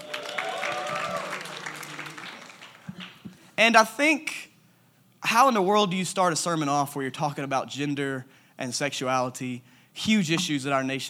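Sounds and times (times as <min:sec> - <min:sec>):
brief cheer: 0:00.0 - 0:02.4
church audience applause: 0:00.0 - 0:03.3
speech: 0:03.6 - 0:04.5, 0:05.2 - 0:11.0.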